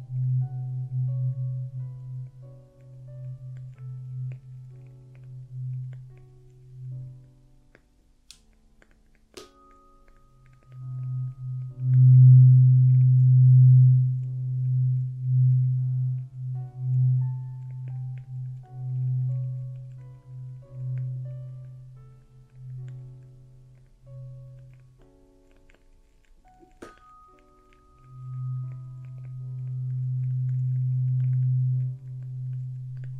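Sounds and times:
low steady buzzing drone of traditional Chinese ear cleaning: 0:00.0 - 0:07.2, 0:10.7 - 0:24.6, 0:28.1 - 0:33.1.

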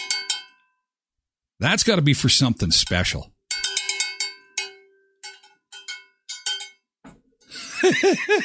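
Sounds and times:
speech: 0:01.6 - 0:03.3, 0:07.8 - 0:08.4
bright metallic bell ringing: 0:03.5 - 0:06.8
laughter: 0:07.6 - 0:08.4.

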